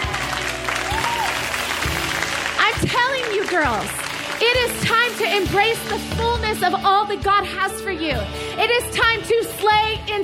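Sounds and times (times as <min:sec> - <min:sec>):
audience clapping: 0:00.0 - 0:06.0
speech: 0:03.5 - 0:10.2.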